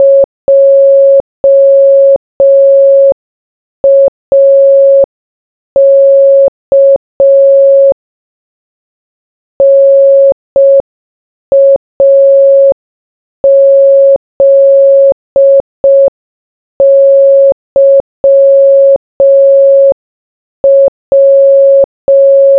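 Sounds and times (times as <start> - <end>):
morse code beeps: 0.0 - 3.2, 3.8 - 5.1, 5.8 - 8.0, 9.6 - 10.8, 11.5 - 12.8, 13.4 - 16.1, 16.8 - 20.0, 20.6 - 22.5.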